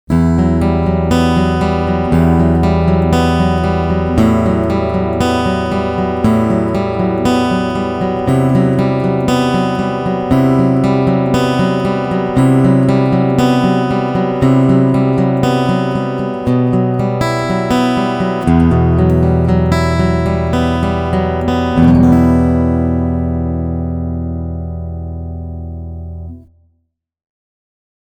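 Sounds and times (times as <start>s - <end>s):
guitar picking through CoolTube: 0.1s - 26.5s.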